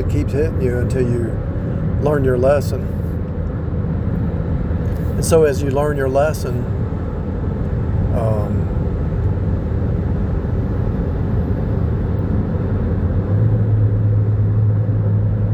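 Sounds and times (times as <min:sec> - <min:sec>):
speech: 0:00.0 - 0:03.0, 0:05.2 - 0:06.8, 0:08.2 - 0:08.8
car driving down a highway: 0:00.0 - 0:15.5.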